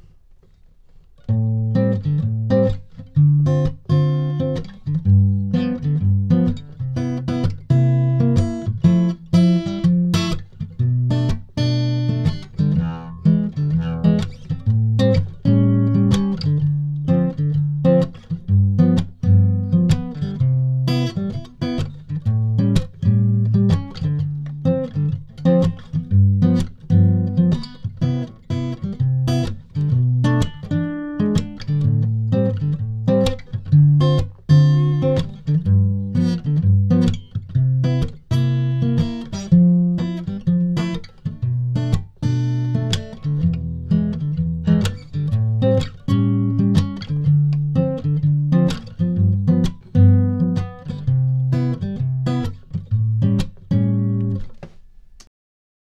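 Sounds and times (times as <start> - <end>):
guitar: 0.0 - 55.3.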